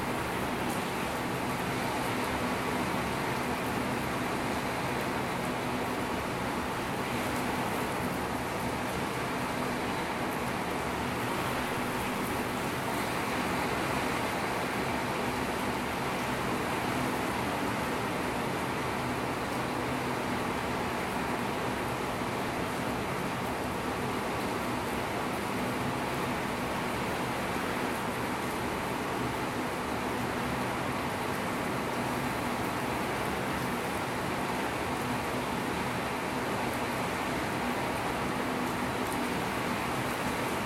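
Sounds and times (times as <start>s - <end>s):
thundershower rain pouring: 0.0s - 40.6s.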